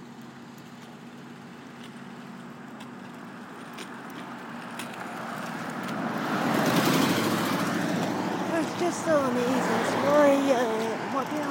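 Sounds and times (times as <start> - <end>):
vehicle driving past on a street: 4.5 - 11.2
speech: 9.1 - 11.4.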